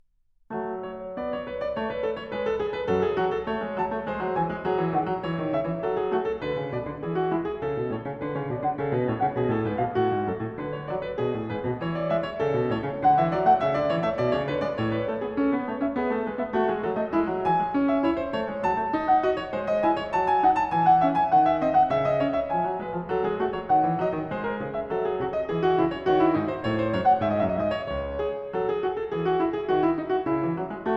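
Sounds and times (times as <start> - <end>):
classical prelude in F-sharp minor: 0.5 - 30.9.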